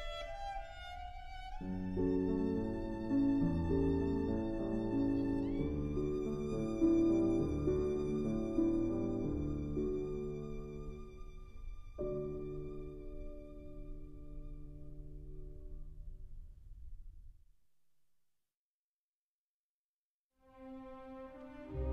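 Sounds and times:
violin: 0:00.0 - 0:15.5, 0:20.4 - 0:21.9
piano: 0:00.0 - 0:17.4, 0:20.4 - 0:21.9.

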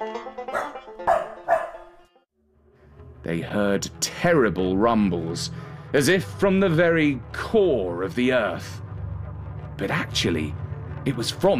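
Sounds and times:
dogs barking: 0:00.5 - 0:02.0
speech: 0:03.2 - 0:08.8, 0:09.8 - 0:11.5.

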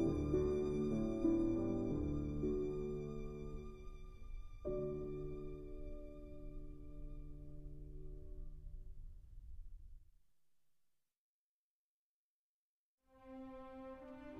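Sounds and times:
violin: 0:00.0 - 0:08.0, 0:13.1 - 0:14.3
piano: 0:00.0 - 0:10.0, 0:13.1 - 0:14.3.

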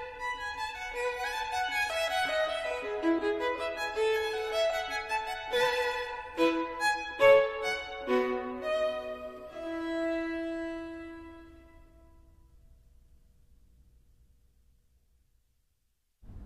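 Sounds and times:
violin: 0:00.0 - 0:12.2.

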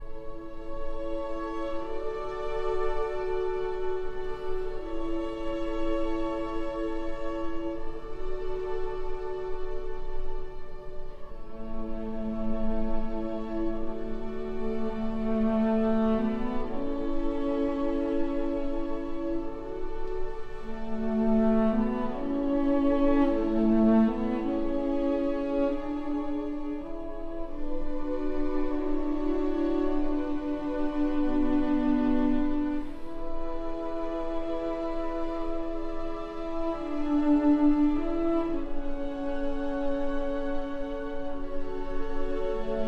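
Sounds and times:
cello and strings: 0:00.0 - 0:42.8.

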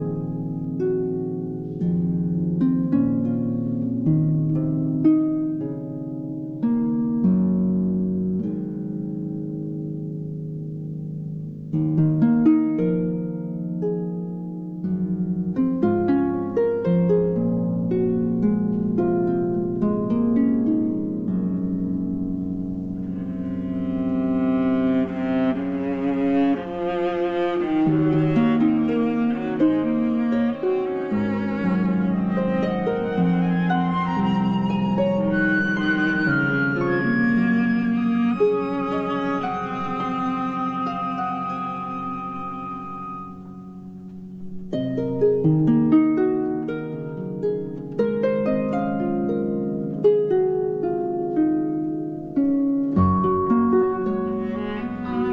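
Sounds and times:
harp concerto lullaby: 0:00.0 - 0:55.3.

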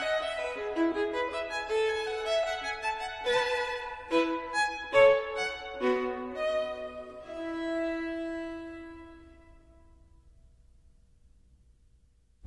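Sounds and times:
violin: 0:00.0 - 0:09.9.

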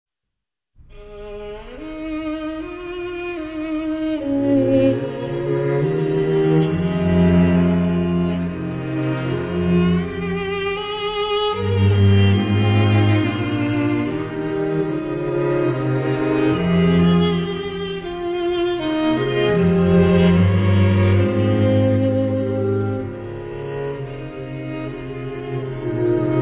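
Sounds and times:
string quartet playing a carol: 0:01.0 - 0:26.4.

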